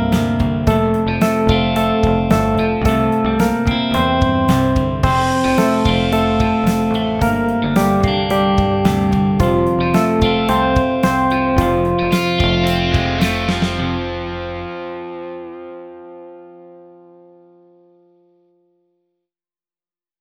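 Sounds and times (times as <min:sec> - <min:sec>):
backing track in F major: 0:00.0 - 0:16.2.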